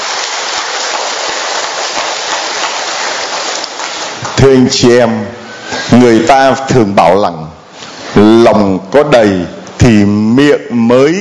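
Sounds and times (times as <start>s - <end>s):
audience applause: 0.0s - 4.4s
speech: 4.4s - 7.5s, 8.1s - 11.1s.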